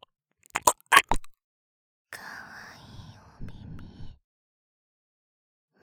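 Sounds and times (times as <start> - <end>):
ear licking: 0.5 - 1.3
person whispering: 0.6 - 1.3, 2.1 - 4.2.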